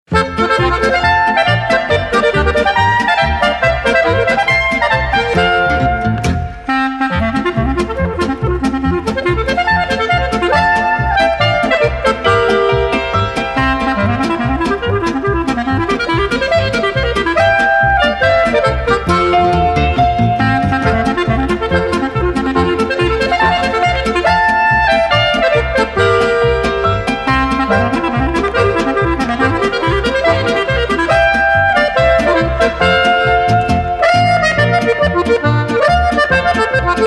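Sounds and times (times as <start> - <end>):
clarinet music: 0.1 - 37.0.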